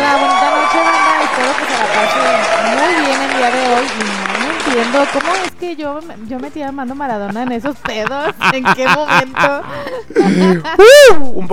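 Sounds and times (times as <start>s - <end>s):
voices cheering and whooping: 0.0s - 3.8s, 10.3s - 11.3s
crowd applauding: 0.0s - 5.5s
speech: 4.9s - 11.5s
laughter: 7.1s - 10.8s.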